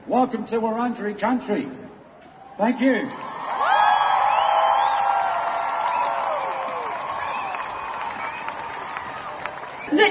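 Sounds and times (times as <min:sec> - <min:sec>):
speech: 0:00.2 - 0:01.8, 0:02.6 - 0:03.3
crowd of striking protesters in Australia cheering: 0:02.2 - 0:10.0.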